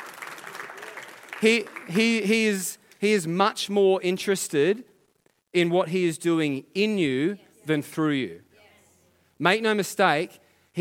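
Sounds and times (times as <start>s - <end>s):
audience clapping: 0.0s - 3.2s
speech: 1.4s - 4.9s, 5.5s - 8.5s, 9.4s - 10.8s.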